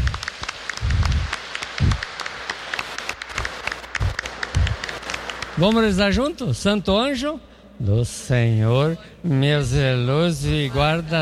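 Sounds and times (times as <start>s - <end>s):
applause for children: 0.0s - 6.2s
speech: 5.6s - 11.2s.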